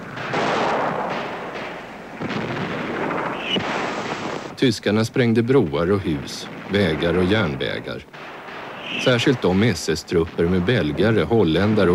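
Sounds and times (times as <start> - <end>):
gunfire with booms and cracks: 0.0 - 4.6, 8.1 - 11.9
bullet ricochet whine: 3.0 - 4.5, 8.5 - 9.3
speech: 4.6 - 8.3, 8.9 - 11.9.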